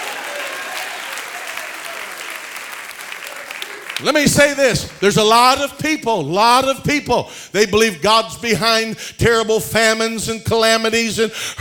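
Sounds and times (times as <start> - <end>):
audience clapping hands: 0.0 - 5.8
speech: 4.0 - 11.6.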